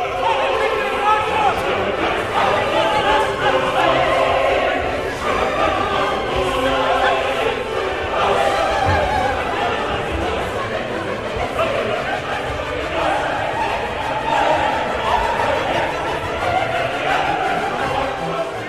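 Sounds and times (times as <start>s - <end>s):
opera chorus singing a riot scene: 0.0s - 18.6s.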